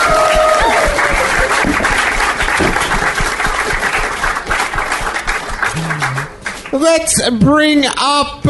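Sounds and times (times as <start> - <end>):
audience applause: 0.0 - 6.7
speech: 6.8 - 8.4.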